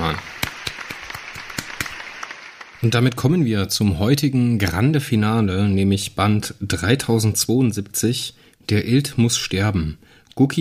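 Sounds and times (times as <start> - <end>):
applause: 0.0 - 3.2
speech: 2.8 - 10.5.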